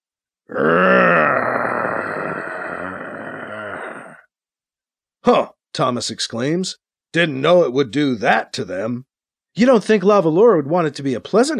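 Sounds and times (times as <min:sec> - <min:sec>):
speech: 0:00.5 - 0:00.9, 0:05.2 - 0:11.5
human voice imitating a low growl: 0:00.5 - 0:04.3.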